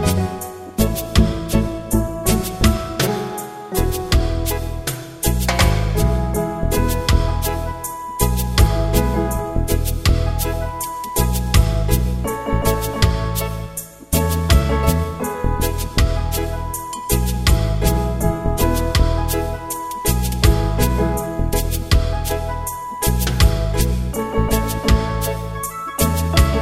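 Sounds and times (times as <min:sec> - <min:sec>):
reggae band playing instrumental: 0:00.0 - 0:26.6.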